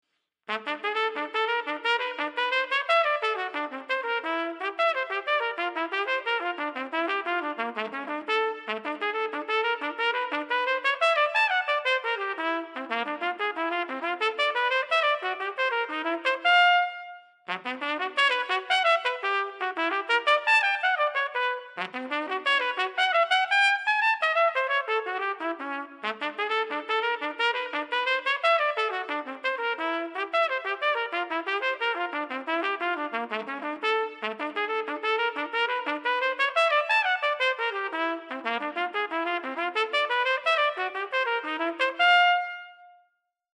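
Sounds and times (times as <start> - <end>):
trumpet playing: 0.5 - 43.0.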